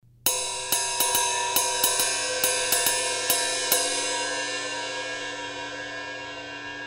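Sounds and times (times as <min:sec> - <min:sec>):
ride cymbal pattern: 0:00.3 - 0:06.7.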